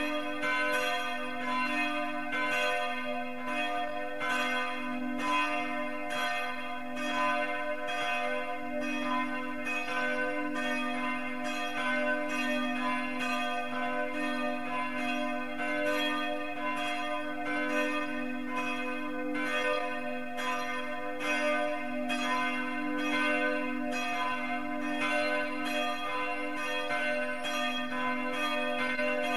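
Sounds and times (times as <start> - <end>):
bells ringing in Marienrode: 0.0 - 29.3.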